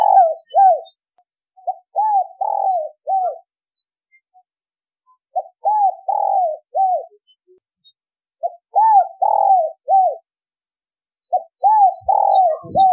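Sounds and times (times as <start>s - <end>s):
spotted dove cooing: 0.0s - 0.9s, 1.6s - 3.4s, 5.3s - 7.2s, 8.4s - 10.3s, 11.3s - 12.9s.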